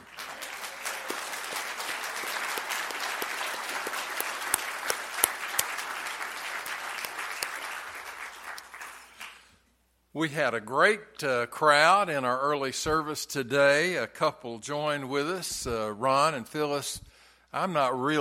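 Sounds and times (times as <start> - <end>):
audience applause: 0.0 - 9.4
speech: 10.2 - 18.1.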